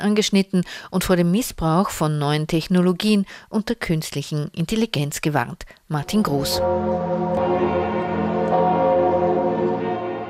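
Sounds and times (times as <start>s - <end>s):
speech: 0.0s - 8.1s
cathedral church bells ringing: 6.1s - 10.2s.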